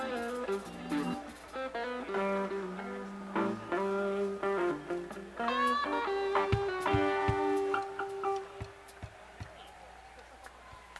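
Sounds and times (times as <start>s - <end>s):
instrument tuning: 0.0s - 8.7s.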